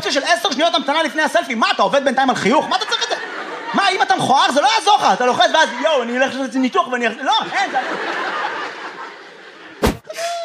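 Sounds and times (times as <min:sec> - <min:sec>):
speech: 0:00.0 - 0:03.0, 0:03.7 - 0:08.4
laughter: 0:02.4 - 0:10.4
audience member sneezing: 0:09.8 - 0:10.4.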